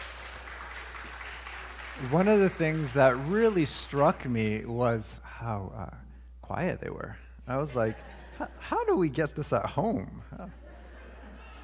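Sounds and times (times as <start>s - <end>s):
audience applause: 0.0s - 4.4s
speech: 2.0s - 10.6s
laughter: 7.6s - 9.1s, 10.2s - 11.6s.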